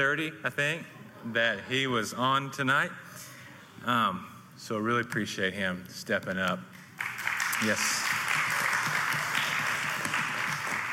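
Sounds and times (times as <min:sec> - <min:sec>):
speech: 0:00.0 - 0:03.1, 0:03.8 - 0:08.1
audience clapping at an evening gathering: 0:06.7 - 0:10.9.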